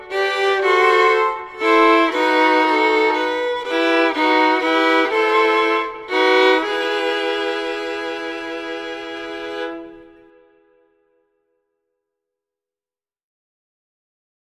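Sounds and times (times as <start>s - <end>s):
fiddle playing Christmas music: 0.0s - 10.8s.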